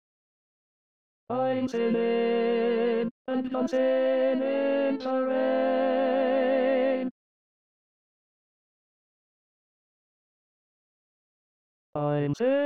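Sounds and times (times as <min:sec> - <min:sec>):
tenor voice singing an SATB choral part: 0:01.3 - 0:07.1.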